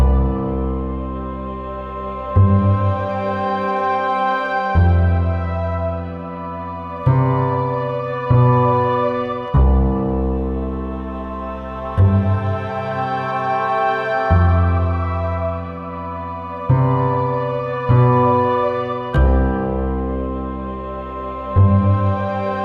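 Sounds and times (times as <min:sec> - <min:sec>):
orchestra loop: 0:00.1 - 0:22.6.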